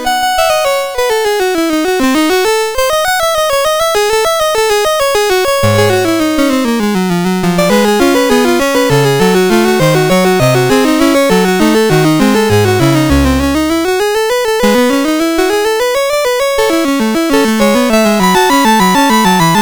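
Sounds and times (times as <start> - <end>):
courante on MOS6581R4 sound chip: 0.0 - 19.6.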